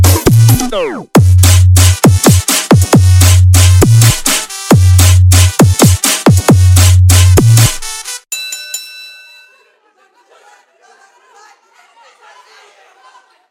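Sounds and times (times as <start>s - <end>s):
funk frequencia music: 0.0s - 8.2s
laughter: 9.5s - 13.4s.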